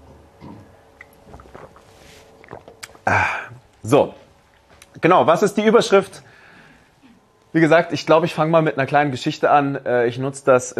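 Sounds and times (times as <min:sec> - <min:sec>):
person sipping water: 0:00.4 - 0:03.8
speech: 0:03.1 - 0:04.2, 0:05.0 - 0:06.3, 0:07.6 - 0:10.7.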